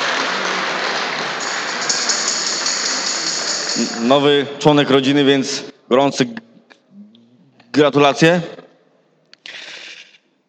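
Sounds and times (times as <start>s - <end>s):
group applauding a new parent: 0.0s - 4.1s
speech: 3.8s - 6.5s, 7.8s - 8.6s.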